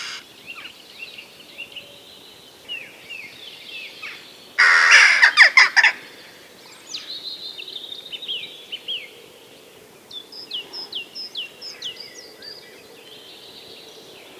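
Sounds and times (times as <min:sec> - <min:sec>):
Western jackdaw harsh calls: 0:00.0 - 0:00.2, 0:04.6 - 0:05.5.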